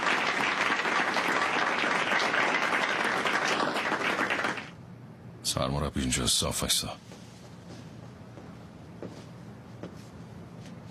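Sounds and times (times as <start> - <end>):
audience applause: 0.0 - 4.8
speech: 5.5 - 7.2.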